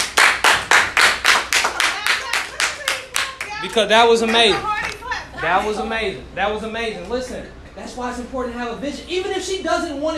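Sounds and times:
hands clapping: 0.0 - 5.0
speech: 3.6 - 4.8, 5.4 - 10.1.

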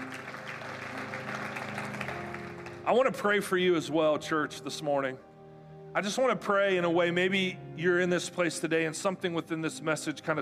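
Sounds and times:
audience applauding with hand claps: 0.0 - 3.0
speech: 2.9 - 5.3, 6.0 - 10.4.

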